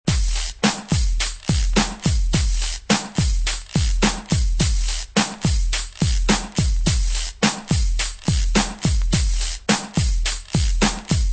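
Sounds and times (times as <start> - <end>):
drum loops: 0.1 - 11.3.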